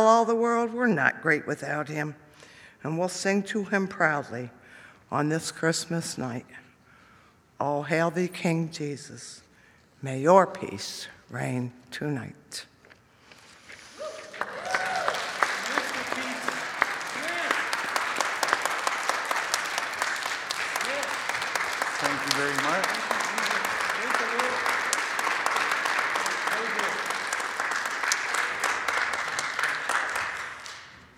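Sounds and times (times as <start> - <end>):
speech: 0.0 - 2.2, 2.8 - 6.6, 7.6 - 9.4, 10.0 - 12.7, 22.3 - 22.9
audience applause: 13.9 - 31.1.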